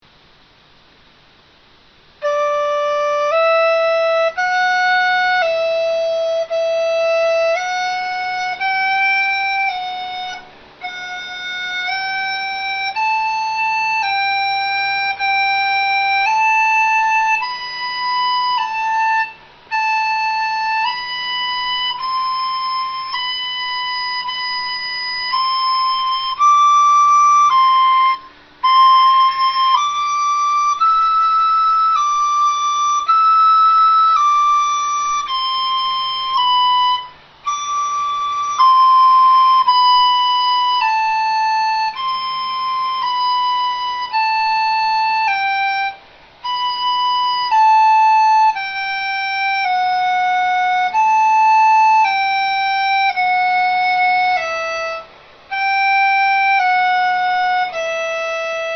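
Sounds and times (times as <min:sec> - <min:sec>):
dizi bamboo flute: 0:01.4 - 0:58.7.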